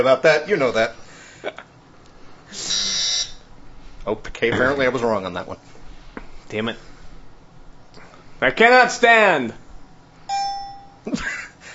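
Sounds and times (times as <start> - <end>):
speech: 0.0 - 1.7, 4.0 - 5.8, 6.5 - 6.9, 8.4 - 9.6, 11.0 - 11.4
quiz dinger bell: 10.3 - 11.1.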